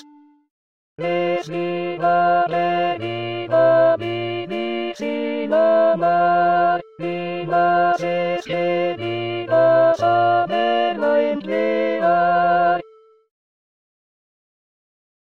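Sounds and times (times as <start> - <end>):
voice: 1.0 - 12.8.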